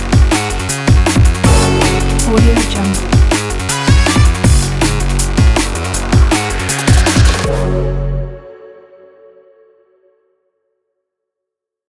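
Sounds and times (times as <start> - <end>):
electronic action drive music: 0.0 - 8.2.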